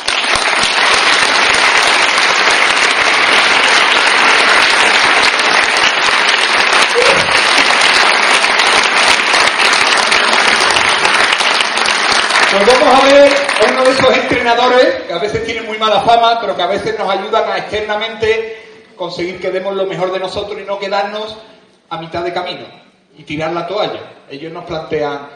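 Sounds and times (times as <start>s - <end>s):
applause: 0.0s - 14.6s
speech: 13.2s - 25.3s.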